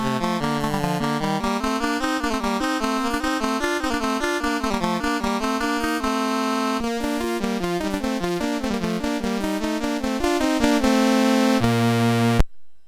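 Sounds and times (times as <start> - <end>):
presto sonata movement played on a MOS6581R4 sound chip: 0.0 - 12.4.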